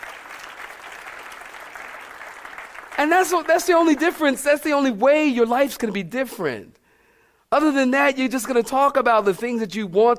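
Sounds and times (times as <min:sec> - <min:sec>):
audience clapping: 0:00.0 - 0:04.4
speech: 0:03.0 - 0:06.8, 0:07.5 - 0:10.1.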